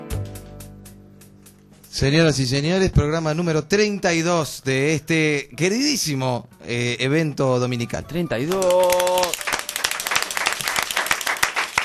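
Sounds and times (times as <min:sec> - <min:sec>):
speech: 0:02.0 - 0:09.3
studio audience applauding: 0:08.4 - 0:11.8.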